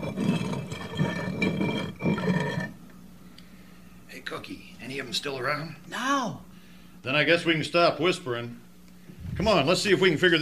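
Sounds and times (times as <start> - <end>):
boulder sliding back into place: 0.0 - 2.8
speech: 4.9 - 8.6, 9.4 - 10.4.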